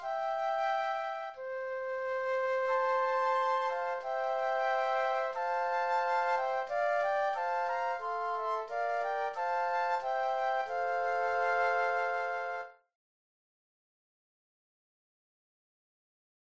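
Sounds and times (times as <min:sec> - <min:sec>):
flute trio playing: 0:00.0 - 0:12.8.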